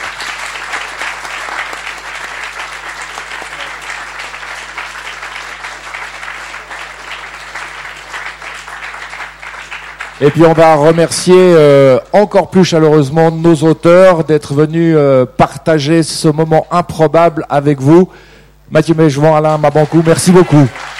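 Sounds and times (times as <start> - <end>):
audience applause: 0.0 - 12.0, 19.5 - 20.9
speech: 10.2 - 20.8.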